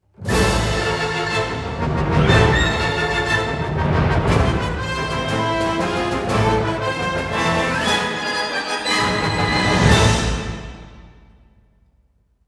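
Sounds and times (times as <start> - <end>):
victory music: 0.3 - 11.5.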